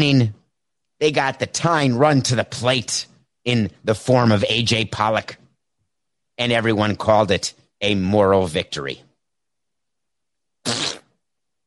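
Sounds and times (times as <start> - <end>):
speech: 0.0 - 0.4, 1.0 - 5.4, 6.4 - 9.1
armpit fart noise made with a hand: 10.6 - 11.2.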